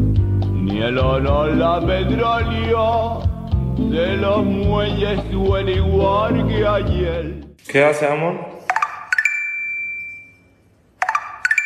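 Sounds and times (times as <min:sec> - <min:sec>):
speech: 0:00.8 - 0:08.6
Tinder app notification chimes: 0:08.7 - 0:10.4, 0:11.0 - 0:11.6.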